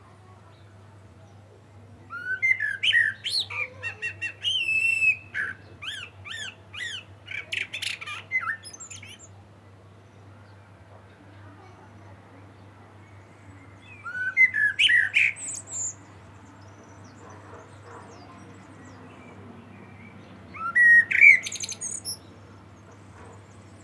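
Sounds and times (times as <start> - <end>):
common blackbird fluty whistling song: 2.1 - 9.3, 13.8 - 16.0, 20.5 - 22.2.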